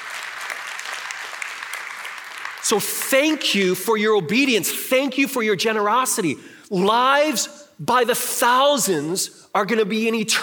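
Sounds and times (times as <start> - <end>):
audience clap offering: 0.0 - 3.6
speech: 2.6 - 10.4.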